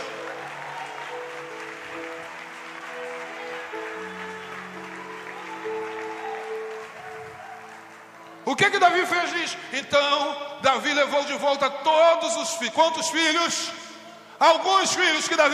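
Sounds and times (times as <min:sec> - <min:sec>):
audience applause: 0:00.0 - 0:09.4
speech: 0:08.5 - 0:13.8, 0:14.4 - 0:15.5.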